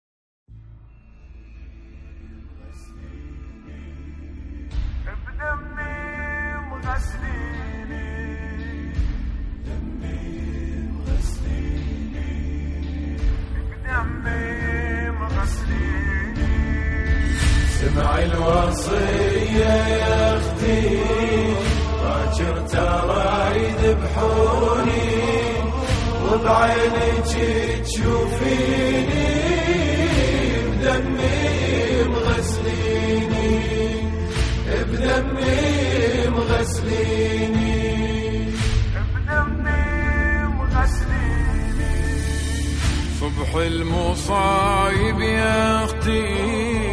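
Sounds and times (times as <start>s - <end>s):
Arabic nawha chant: 2.7s - 46.9s.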